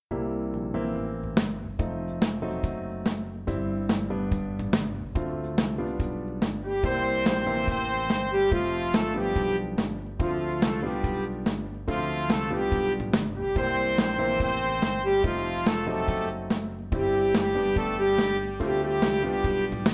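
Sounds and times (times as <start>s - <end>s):
jazz music: 0.2s - 19.9s.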